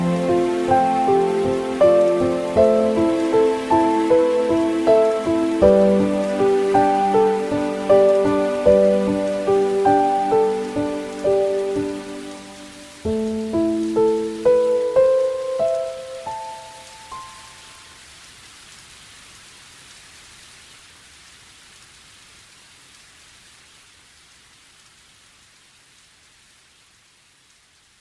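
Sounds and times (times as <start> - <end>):
melody: 0.0 - 17.6.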